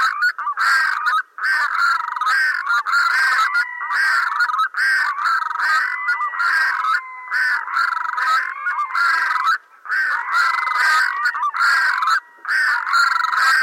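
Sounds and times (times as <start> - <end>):
red-throated loon display calls: 0.0 - 13.6.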